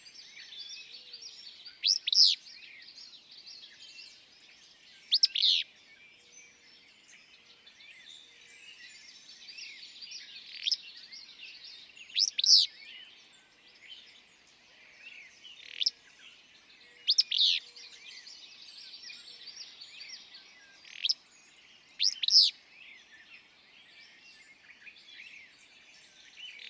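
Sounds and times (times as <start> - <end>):
other songbirds singing: 0.0 - 26.6.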